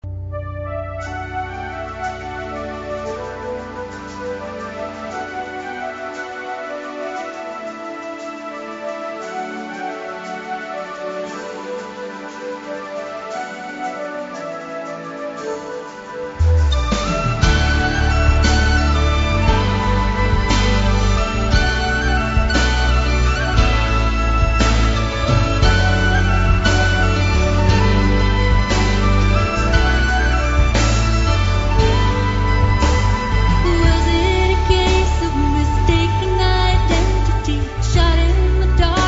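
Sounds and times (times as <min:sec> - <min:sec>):
celtic worship music: 0:01.2 - 0:39.0.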